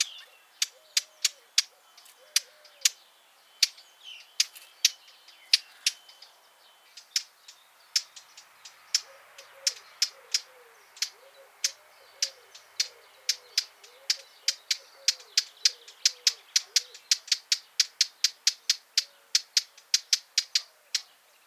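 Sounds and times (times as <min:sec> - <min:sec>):
Eurasian blackcap hard clicking tack calls: 0:00.0 - 0:03.0, 0:04.4 - 0:06.1, 0:08.9 - 0:21.1.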